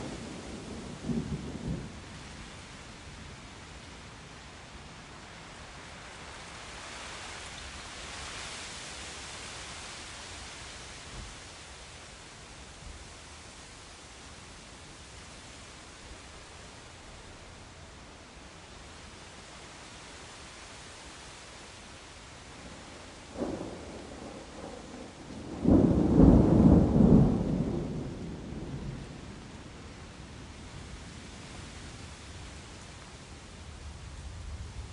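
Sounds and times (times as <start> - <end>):
steady rain in a thunderstorm: 0.0 - 34.9
thunder rumbling: 22.6 - 29.6.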